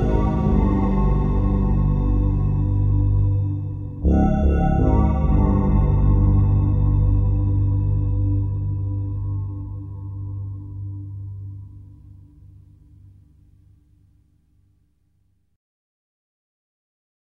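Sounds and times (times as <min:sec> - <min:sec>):
music: 0:00.0 - 0:13.2.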